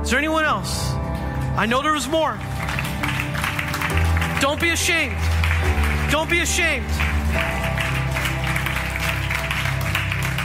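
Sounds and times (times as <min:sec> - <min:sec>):
speech: 0:00.0 - 0:03.3, 0:04.4 - 0:07.7
crowd clapping: 0:01.3 - 0:10.4.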